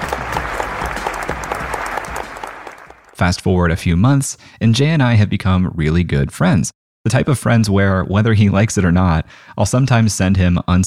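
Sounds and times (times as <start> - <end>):
audience applause: 0.0 - 3.2
speech: 3.2 - 10.8.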